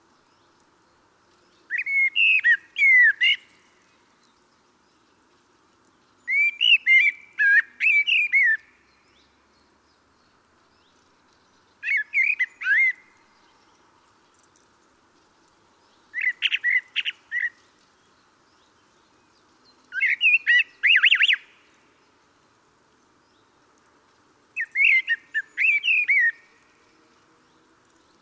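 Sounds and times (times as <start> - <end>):
common blackbird singing: 1.5 - 3.5, 6.2 - 9.3, 11.8 - 13.8, 15.9 - 17.6, 19.9 - 21.6, 24.6 - 26.5.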